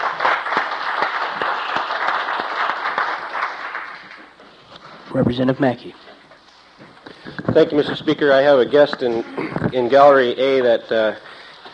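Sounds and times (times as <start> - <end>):
applause in a legislative chamber welcoming a guest: 0.0 - 4.4
speech: 5.2 - 6.1, 7.6 - 11.3.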